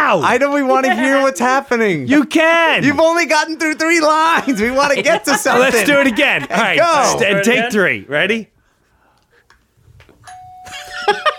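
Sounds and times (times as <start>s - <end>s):
speech: 0.1s - 8.5s
laughter: 0.7s - 1.4s, 2.8s - 7.8s, 10.7s - 11.3s
doorbell ringing: 10.2s - 11.3s.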